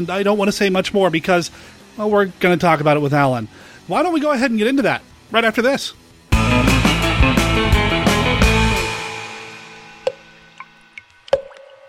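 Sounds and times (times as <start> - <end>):
speech: 0.0 - 6.0
loud dense musical chord at the opening of a film: 6.3 - 11.0
dripping blood sound effect at the opening of Black Sunday: 10.0 - 11.8.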